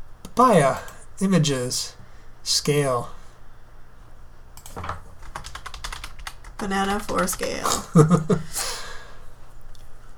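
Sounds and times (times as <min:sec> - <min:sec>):
speech: 0:00.4 - 0:03.2, 0:06.6 - 0:08.8
computer keyboard typing to search for papaya images: 0:04.6 - 0:07.6.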